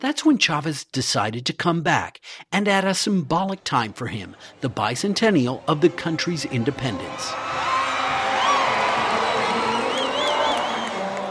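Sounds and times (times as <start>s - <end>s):
speech: 0.0s - 7.7s
red-clad followers shouting for their leader outside the presidential palace: 6.6s - 11.2s
crowd singing the national anthem: 8.4s - 11.2s.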